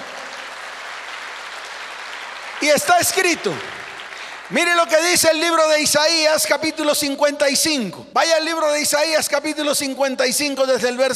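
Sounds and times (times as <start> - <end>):
audience applause: 0.0 - 5.3
speech: 2.6 - 3.8, 4.5 - 11.1.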